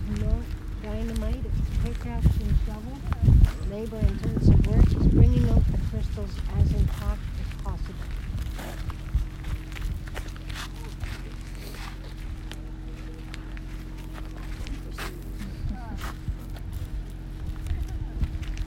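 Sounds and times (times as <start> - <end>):
footsteps of people walking up to an earthquake fault line at a crystal mine: 0.0 - 18.6
low murmur of voices: 0.0 - 18.6
speech: 1.0 - 8.9.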